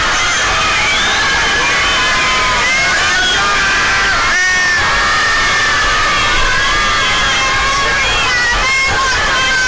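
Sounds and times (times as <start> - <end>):
crowd cheering and shouting: 0.0 - 9.6.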